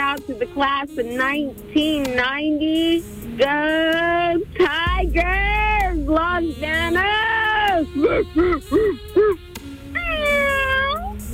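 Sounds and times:
speech: 0.2 - 9.4
cat meowing: 10.0 - 11.2.

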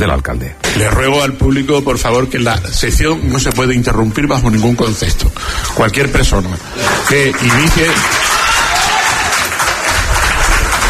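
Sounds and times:
speech: 0.0 - 8.5
audience applause at a town council session: 6.7 - 10.8.

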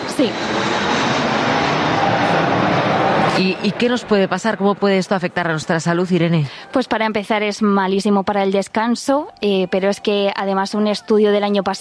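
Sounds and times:
aircraft jet engine roaring at Madrid-Barajas airport: 0.0 - 6.2
speech: 0.2 - 0.6, 3.4 - 11.7.

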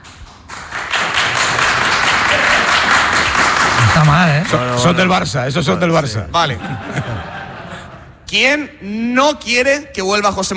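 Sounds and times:
live audience applause: 0.0 - 5.1
speech: 4.0 - 7.1, 8.3 - 10.5
laughter: 5.6 - 8.2.

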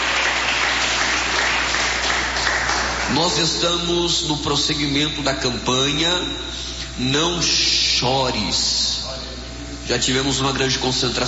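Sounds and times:
audience clapping: 0.0 - 3.7
speech: 3.1 - 8.8, 9.9 - 11.2.

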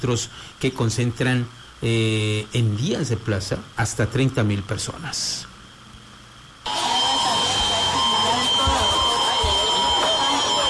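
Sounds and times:
speech: 0.0 - 5.5
seismic alert alarm sounding: 6.7 - 10.6.

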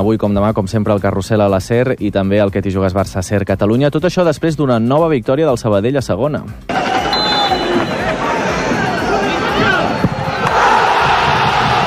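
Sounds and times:
speech: 0.0 - 6.8
scattered shouts: 6.7 - 11.8
stadium crowd roaring and cheering after a goal: 6.7 - 11.8.

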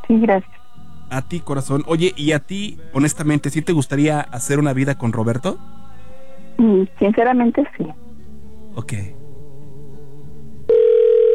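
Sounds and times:
speech: 0.1 - 5.8, 6.6 - 8.0, 8.8 - 9.2
telephone tone: 10.7 - 11.3.

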